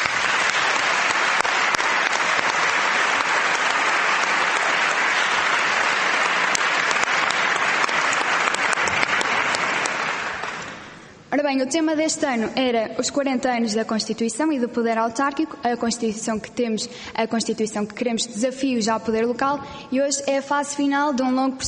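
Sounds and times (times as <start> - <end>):
large audience applause: 0.0 - 11.0
speech: 11.5 - 21.6.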